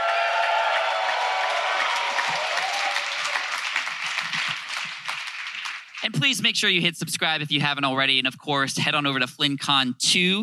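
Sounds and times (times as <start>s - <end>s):
live audience applauding and cheering: 0.0s - 6.6s
speech: 6.1s - 10.4s.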